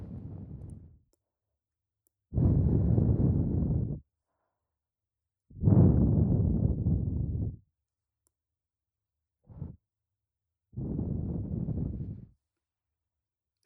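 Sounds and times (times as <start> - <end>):
blowing into the right ear: 2.4 - 4.0, 5.6 - 7.6, 10.8 - 12.3.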